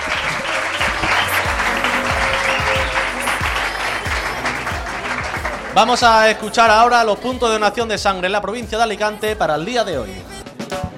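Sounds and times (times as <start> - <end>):
applause: 0.0 - 6.5
speech: 5.8 - 10.3.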